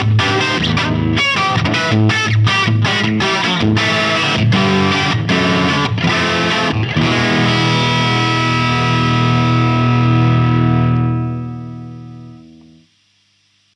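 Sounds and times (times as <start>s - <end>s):
crunch single coil guitar through guitar amp: 0.0s - 12.9s.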